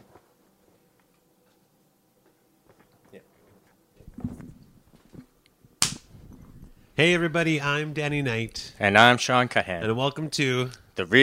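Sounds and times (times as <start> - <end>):
hand clap for recording sync: 5.8 - 6.1
speech: 7.0 - 11.2.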